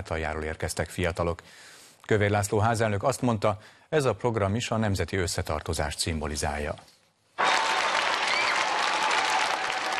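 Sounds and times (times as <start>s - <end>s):
speech: 0.0s - 7.0s
audience applause in parliament hall: 7.4s - 9.9s.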